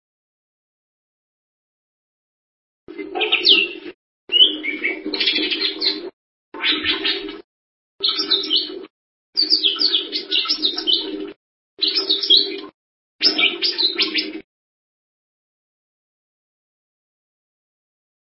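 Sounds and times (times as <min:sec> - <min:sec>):
bird song twittering: 0:03.1 - 0:07.4, 0:08.0 - 0:14.4.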